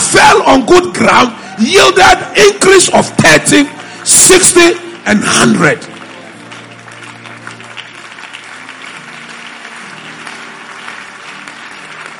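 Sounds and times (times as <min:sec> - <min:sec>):
speech: 0:00.1 - 0:06.0
audience clapping: 0:01.9 - 0:12.1.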